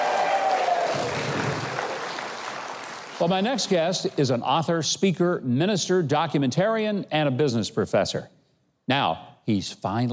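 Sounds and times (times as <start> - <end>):
audience applause after a live musical performance: 0.0 - 4.1
speech: 3.2 - 10.1.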